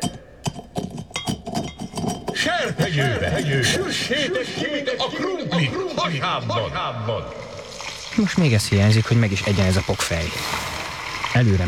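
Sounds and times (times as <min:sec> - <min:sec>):
something crushed and pounded in a stone mortar: 0:00.0 - 0:03.9
laughter: 0:02.4 - 0:07.5
speech: 0:02.6 - 0:07.6, 0:08.2 - 0:10.7, 0:11.3 - 0:11.6.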